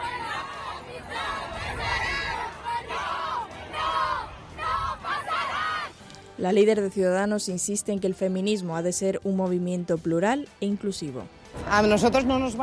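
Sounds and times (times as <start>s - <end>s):
protest crowd shouting insults: 0.0s - 6.0s
speech: 6.4s - 12.6s.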